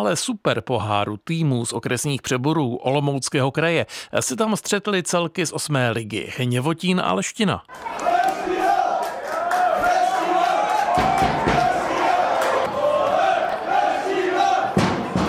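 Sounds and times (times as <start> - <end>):
speech: 0.0 - 8.6
football fan club cheering and chanting at a stadium: 7.7 - 15.2
sharp bangs: 14.6 - 15.2.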